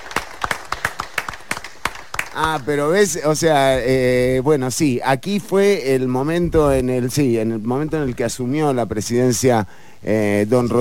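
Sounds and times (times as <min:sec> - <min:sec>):
hand claps: 0:00.0 - 0:02.7
speech: 0:02.4 - 0:10.8.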